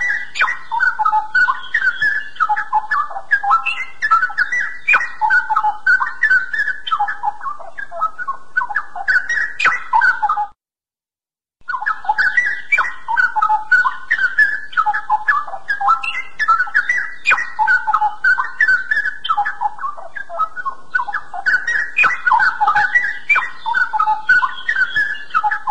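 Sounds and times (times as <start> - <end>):
bird song: 0.0 - 10.6, 11.6 - 25.6.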